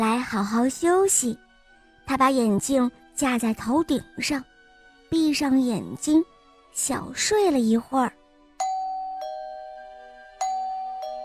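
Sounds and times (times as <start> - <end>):
speech: 0.0 - 1.5, 2.1 - 4.5, 5.1 - 8.2
doorbell ding-dong: 8.6 - 11.2.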